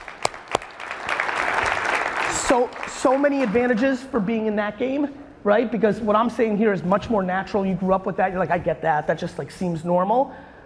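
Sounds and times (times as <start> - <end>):
audience applause at a live talk: 0.0 - 4.0
speech: 2.5 - 10.5.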